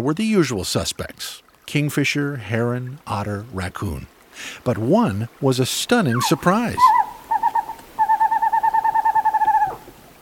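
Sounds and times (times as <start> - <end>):
speech: 0.0 - 7.0
western screech owl call: 6.2 - 9.9.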